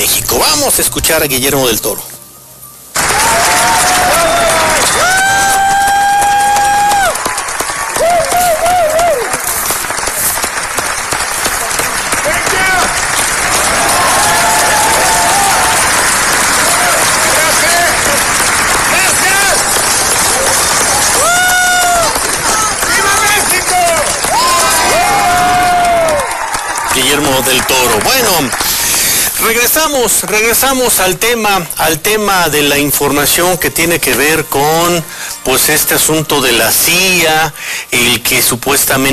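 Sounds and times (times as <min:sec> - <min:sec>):
speech: 0:00.1 - 0:02.2, 0:29.4 - 0:39.1
audience applause: 0:03.0 - 0:31.0.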